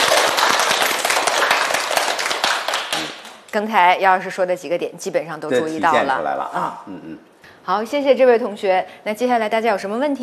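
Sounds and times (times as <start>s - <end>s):
classroom audience applauding: 0.0s - 3.4s
speech: 3.6s - 10.2s.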